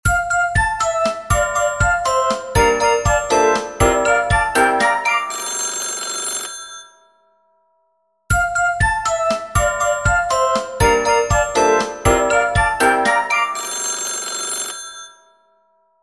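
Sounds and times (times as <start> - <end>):
ringtone: 0.1 - 7.0, 8.3 - 15.4.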